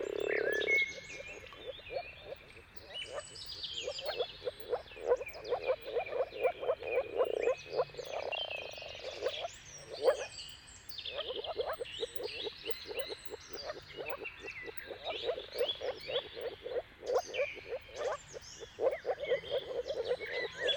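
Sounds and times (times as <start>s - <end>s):
dawn birdsong: 0.0s - 20.7s
moor frogs croaking: 0.0s - 20.7s.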